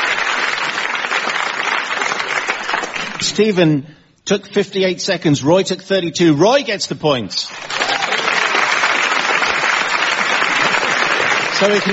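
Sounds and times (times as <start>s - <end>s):
audience applause: 0.0s - 3.2s, 7.5s - 11.9s
speech: 3.4s - 7.7s, 11.6s - 11.9s.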